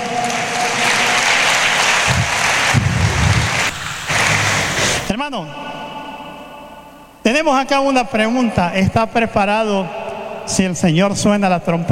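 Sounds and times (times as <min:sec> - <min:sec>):
audience applauding: 0:00.0 - 0:05.1
speech: 0:07.4 - 0:11.9.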